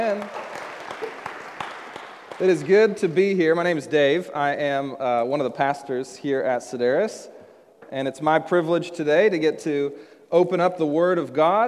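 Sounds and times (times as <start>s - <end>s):
speech: 0.0s - 0.4s, 2.4s - 11.6s
audience applause: 0.0s - 3.0s.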